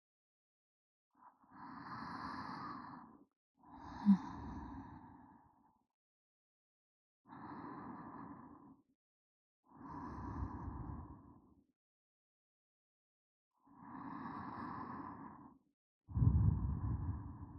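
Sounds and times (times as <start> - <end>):
sleeping breath: 1.7 - 5.5, 9.7 - 11.2, 13.8 - 17.5.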